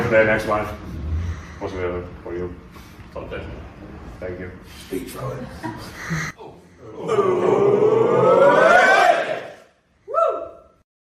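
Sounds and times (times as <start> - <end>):
speech: 0.1 - 1.0, 1.6 - 8.4
cheering: 7.0 - 10.6.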